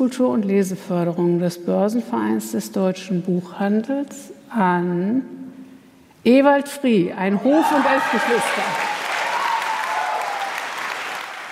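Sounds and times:
speech: 0.0s - 5.4s, 6.2s - 8.9s
audience applause and cheering at the German nonfiction book prize ceremony: 7.4s - 11.4s.

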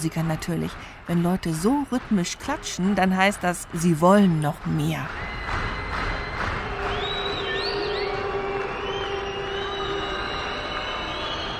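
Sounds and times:
speech: 0.0s - 6.0s
audience booing at a concert: 5.1s - 11.5s.

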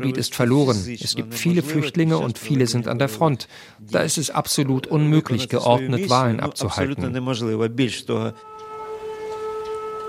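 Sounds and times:
speech: 0.0s - 8.6s
air raid siren wailing: 8.3s - 10.0s.

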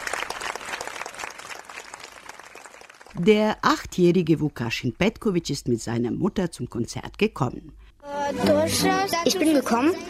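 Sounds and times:
audience applause: 0.0s - 3.2s
speech: 3.2s - 10.0s.

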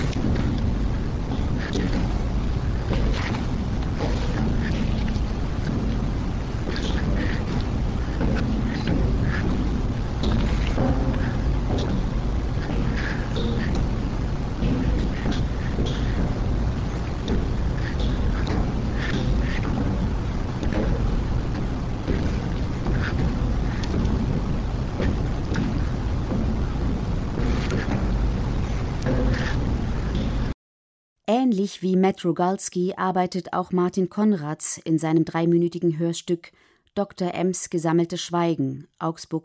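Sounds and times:
dense continuous low rumble: 0.0s - 30.6s
dull thudding echoes of a processed voice: 0.0s - 30.6s
speech: 31.7s - 39.4s.

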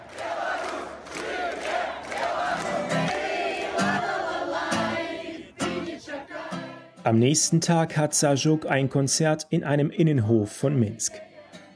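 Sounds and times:
crowd shouting opposition slogans: 0.0s - 7.0s, 10.5s - 11.7s
speech: 7.1s - 11.3s.

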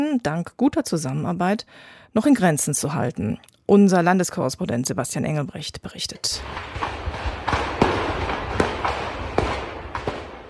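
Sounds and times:
speech: 0.0s - 7.1s
detonating ammunition and fireworks: 6.4s - 10.4s.

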